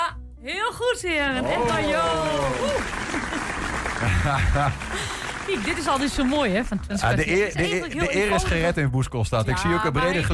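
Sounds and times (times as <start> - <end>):
speech: 0.4 - 10.3
group applause: 1.3 - 8.3
laughter: 1.5 - 8.0.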